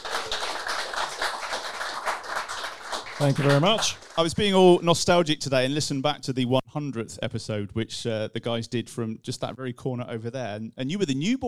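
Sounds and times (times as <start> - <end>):
applause: 0.0 - 4.7
speech: 3.2 - 11.4.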